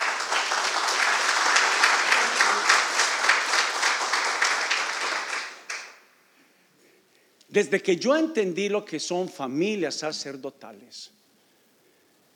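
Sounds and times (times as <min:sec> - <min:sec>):
audience applause: 0:00.0 - 0:06.0
speech: 0:07.6 - 0:11.2.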